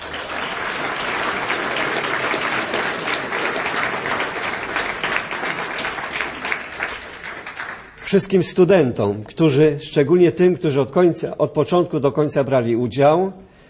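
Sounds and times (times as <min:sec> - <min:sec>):
crowd applauding: 0:00.0 - 0:08.3
speech: 0:08.1 - 0:13.5.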